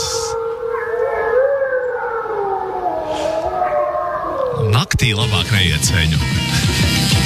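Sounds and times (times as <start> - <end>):
wolves howling: 0.0 - 4.7
speech: 5.0 - 7.1.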